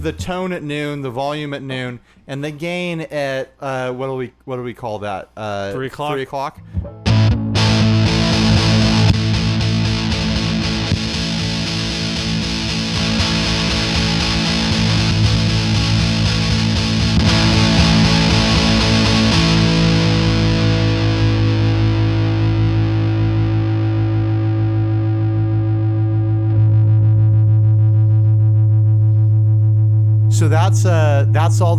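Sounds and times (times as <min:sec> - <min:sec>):
speech: 0:00.0 - 0:06.9, 0:30.4 - 0:31.7
electric guitar chord through a fuzz pedal on the bridge pickup: 0:06.8 - 0:31.4.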